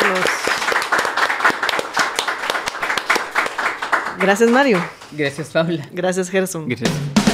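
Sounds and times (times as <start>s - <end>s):
applause: 0.0s - 5.7s
speech: 4.2s - 7.2s.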